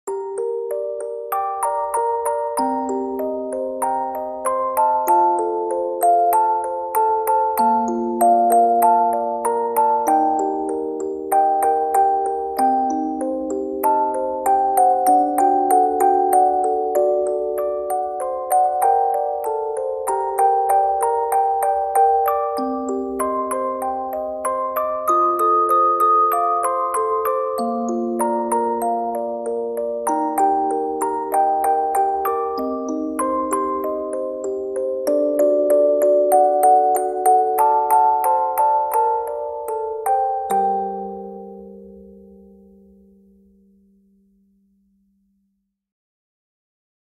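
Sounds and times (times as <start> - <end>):
music box: 0.1 - 43.4.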